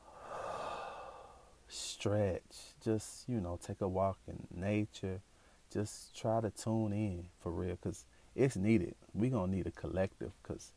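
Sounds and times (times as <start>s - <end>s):
slow exhale breath: 0.0s - 1.6s
speech: 1.7s - 10.7s.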